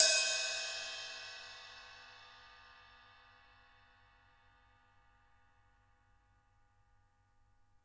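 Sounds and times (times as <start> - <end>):
jazz kit ride cymbal on acoustic drums: 0.0 - 4.3.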